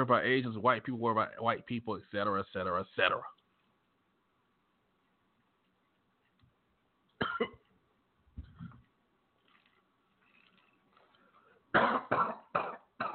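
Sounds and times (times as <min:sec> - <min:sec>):
speech: 0:00.0 - 0:03.4, 0:11.7 - 0:13.1
harsh coughs: 0:07.2 - 0:07.6, 0:11.7 - 0:13.1.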